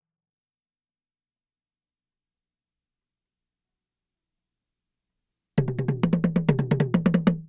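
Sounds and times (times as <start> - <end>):
Asian toy djembe and toms: 5.6 - 7.4.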